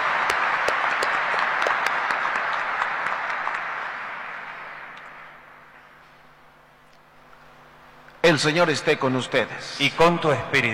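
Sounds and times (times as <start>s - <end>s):
audience applause: 0.0s - 5.6s
speech: 8.3s - 10.7s.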